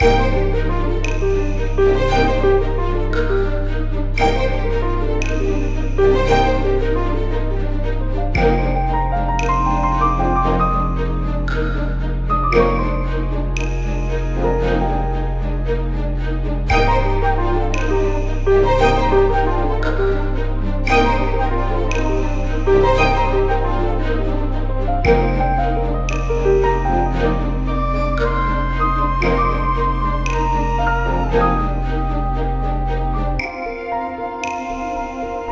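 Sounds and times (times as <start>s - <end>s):
music loop: 0.0s - 35.5s.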